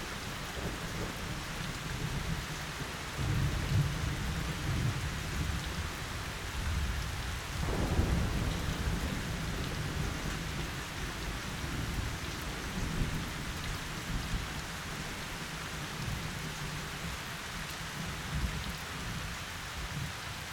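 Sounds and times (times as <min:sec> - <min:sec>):
thunderstorm: 0:00.0 - 0:20.4.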